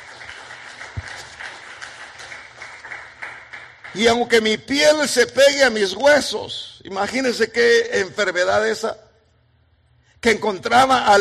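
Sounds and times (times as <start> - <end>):
audience clapping hands: 0.0 - 4.4
speech: 3.9 - 9.0, 10.2 - 11.1.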